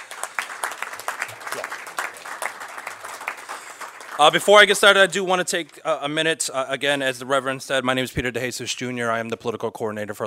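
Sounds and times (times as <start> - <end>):
audience applause: 0.0 - 5.2
speech: 1.5 - 1.8, 4.2 - 10.2.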